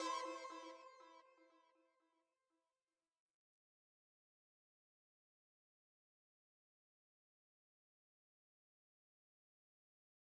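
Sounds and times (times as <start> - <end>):
mellow mix music stem layer: 0.0 - 1.1.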